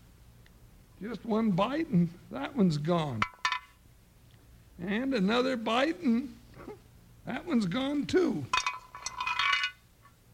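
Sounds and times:
speech: 1.0 - 3.3, 4.8 - 8.6
chicken bone clinking in a frying pan: 8.5 - 9.8.

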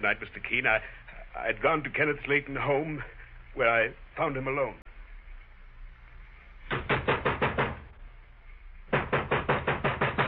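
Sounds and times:
speech: 0.0 - 4.9
knocking on a door: 6.7 - 7.8, 8.9 - 10.2.

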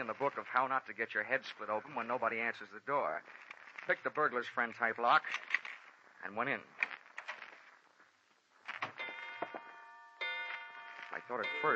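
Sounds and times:
speech: 0.0 - 5.6, 6.2 - 6.8, 11.3 - 11.7
grandfather clock chiming the hour: 9.0 - 11.7.

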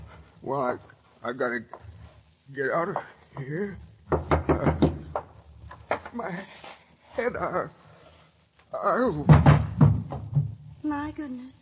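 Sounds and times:
speech: 0.5 - 1.9, 2.5 - 4.8, 6.1 - 7.8, 8.7 - 11.6
police pounding heavily on a door: 4.1 - 5.3, 9.2 - 10.6.

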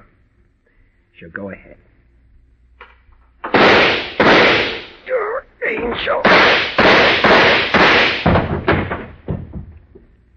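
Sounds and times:
speech: 1.2 - 1.9, 5.7 - 7.1
gunshots as a gun is emptied: 3.4 - 5.1, 5.9 - 9.3.

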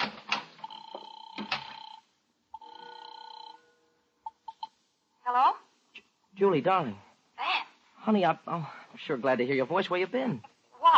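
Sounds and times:
telephone ringing with an electronic trill: 0.4 - 4.8
speech: 6.4 - 7.0, 8.0 - 10.5.

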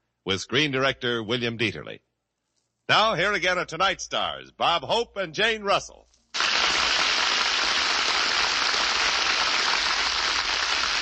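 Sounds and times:
speech: 0.2 - 2.1, 2.9 - 6.0
studio audience applause: 6.4 - 10.9.

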